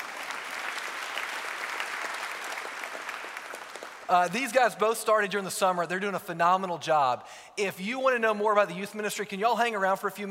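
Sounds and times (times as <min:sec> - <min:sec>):
audience applause: 0:00.0 - 0:04.4
speech: 0:04.1 - 0:10.2.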